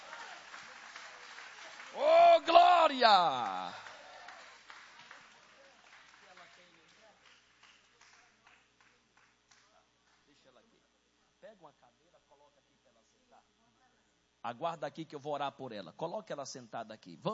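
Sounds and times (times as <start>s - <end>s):
audience applauding: 0.0s - 9.3s
speech: 2.9s - 3.8s, 14.5s - 17.3s.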